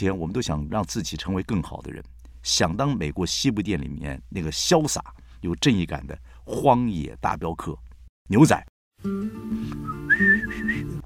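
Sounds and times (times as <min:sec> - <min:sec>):
speech: 0:00.0 - 0:10.7
person whistling a short melodic phrase: 0:09.6 - 0:11.0.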